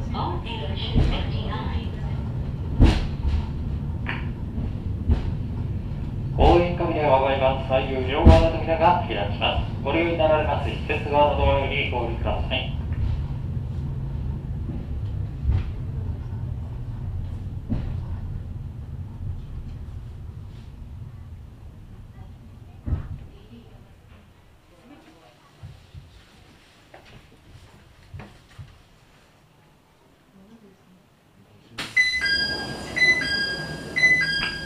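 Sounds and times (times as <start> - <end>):
cable car rumbling along its track: 0.0 - 24.6, 32.2 - 34.6
speech: 7.6 - 12.7
bright high electronic chime melody: 32.0 - 34.6.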